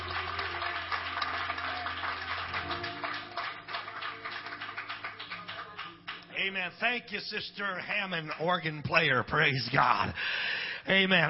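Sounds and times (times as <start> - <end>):
audience clapping hands: 0.0 - 10.5
speech: 6.4 - 11.2.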